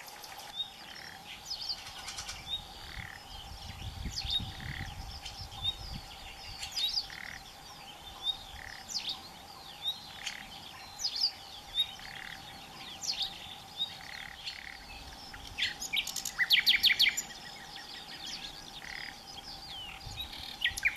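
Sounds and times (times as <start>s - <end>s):
common nightingale singing: 0.0s - 20.9s.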